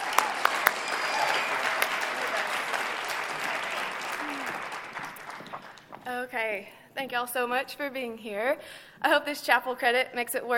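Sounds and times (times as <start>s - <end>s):
chapel audience at LCU clapping to welcome a speaker: 0.0s - 6.1s
speech: 6.3s - 10.5s.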